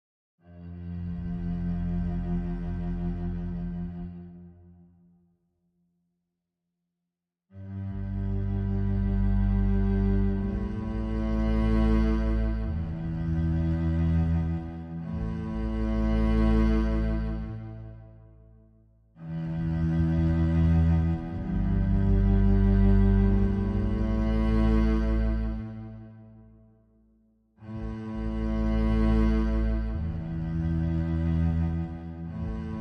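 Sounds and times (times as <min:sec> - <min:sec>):
solo cello playing: 0:00.4 - 0:04.9, 0:07.6 - 0:18.3, 0:19.1 - 0:26.5, 0:27.6 - 0:32.7.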